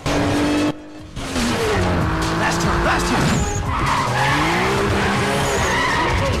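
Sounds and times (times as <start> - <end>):
racing Toyota engine revving with gear changes: 0.0 - 6.3
racing Toyota tyres squealing and skidding into a bend: 2.2 - 6.3.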